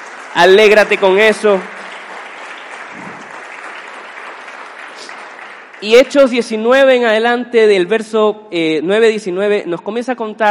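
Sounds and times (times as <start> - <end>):
audience applause: 0.0 - 6.3
speech: 0.4 - 1.7, 5.8 - 10.4.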